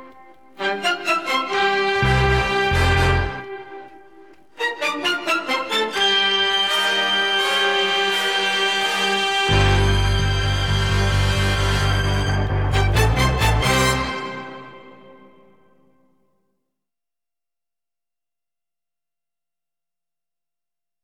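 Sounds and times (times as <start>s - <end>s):
music without drums: 0.0s - 16.2s.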